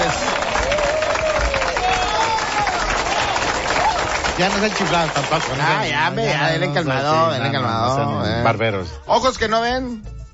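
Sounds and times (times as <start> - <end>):
audience applauding: 0.0 - 6.9
crowd noise: 0.0 - 8.6
speech: 4.4 - 10.2.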